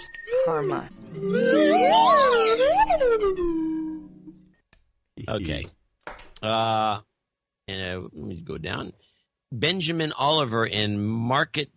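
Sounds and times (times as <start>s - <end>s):
speech: 0.0s - 3.7s, 5.2s - 5.8s, 6.4s - 7.1s, 7.7s - 11.7s
slide whistle ditty: 0.0s - 4.4s.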